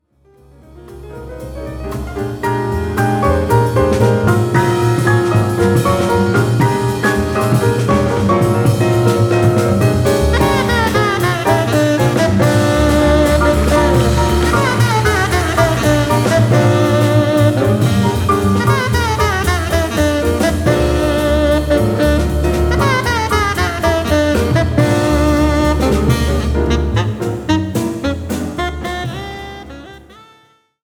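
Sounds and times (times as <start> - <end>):
jazz music: 0.4 - 30.5.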